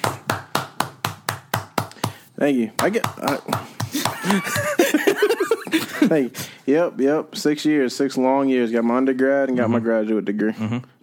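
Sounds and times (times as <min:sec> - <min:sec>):
one person clapping: 0:00.0 - 0:02.2, 0:02.8 - 0:04.8
speech: 0:02.4 - 0:11.0
laughter: 0:03.9 - 0:06.3.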